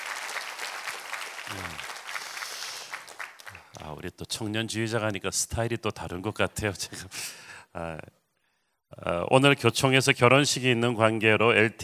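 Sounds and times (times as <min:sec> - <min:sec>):
audience applause: 0:00.0 - 0:03.8
speech: 0:03.8 - 0:08.2, 0:08.9 - 0:11.8.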